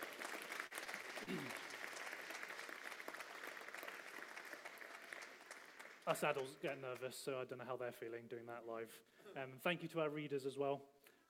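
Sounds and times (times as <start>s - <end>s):
audience round of applause: 0.0s - 7.0s
speech: 1.2s - 1.6s, 6.1s - 11.2s.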